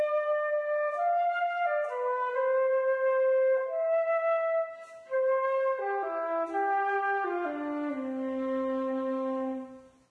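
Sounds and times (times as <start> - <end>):
flute playing a Christmas carol: 0.0 - 10.0.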